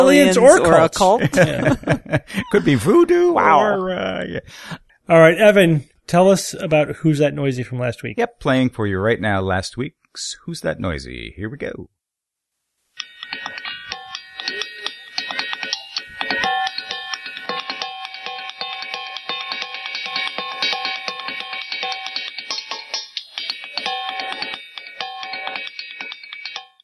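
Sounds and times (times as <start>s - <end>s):
laughter: 0.0s - 4.5s
speech: 0.0s - 12.0s
hammers striking ringing rocks: 13.2s - 26.8s.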